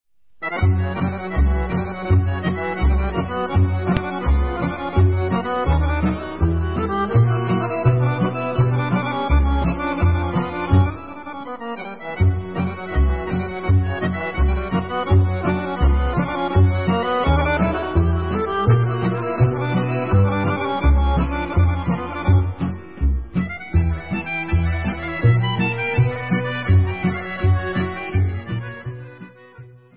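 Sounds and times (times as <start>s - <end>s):
Serbian kolo folk dance music: 0.4s - 29.9s.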